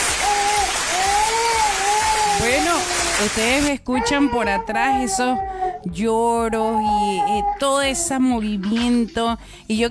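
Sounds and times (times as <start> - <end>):
applause: 0.0 - 3.3
speech: 3.2 - 9.8.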